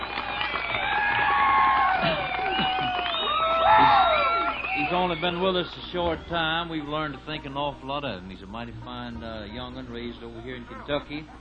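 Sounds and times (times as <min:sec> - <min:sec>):
audience applause: 0:00.0 - 0:07.2
laughter: 0:01.1 - 0:07.6, 0:08.9 - 0:11.3
speech: 0:04.9 - 0:11.3.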